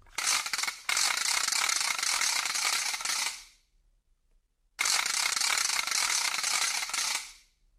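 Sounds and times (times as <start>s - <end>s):
hand-spun matraca cane ratchet rattle whirring: 0.1s - 3.4s, 4.8s - 7.3s.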